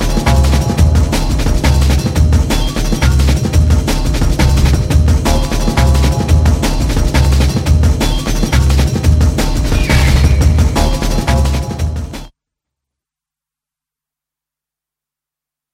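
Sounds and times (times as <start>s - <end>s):
drum and bass music: 0.0s - 12.3s.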